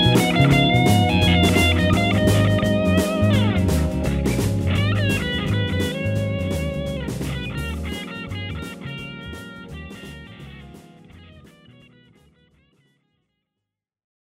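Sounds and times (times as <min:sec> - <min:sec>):
solo blues guitar in A flat: 0:00.0 - 0:12.9.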